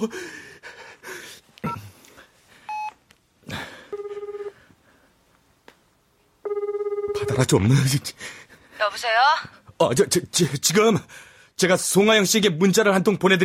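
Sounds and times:
speech: 0:00.0 - 0:00.4, 0:07.4 - 0:13.4
telephone dialing tones: 0:03.9 - 0:04.5, 0:06.4 - 0:07.4.

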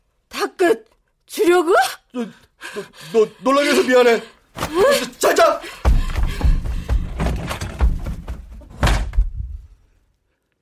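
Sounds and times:
speech: 0:00.6 - 0:05.8
dull wooden thumps and clunks: 0:05.7 - 0:09.7
door slamming shut: 0:07.2 - 0:09.5.

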